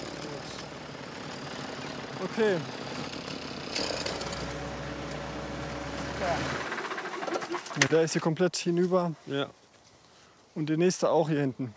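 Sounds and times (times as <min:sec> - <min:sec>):
tractor engine running while the front loader raises its arm: 0:00.0 - 0:08.0
speech: 0:02.2 - 0:03.1, 0:06.2 - 0:06.7, 0:07.8 - 0:09.6, 0:10.6 - 0:11.7.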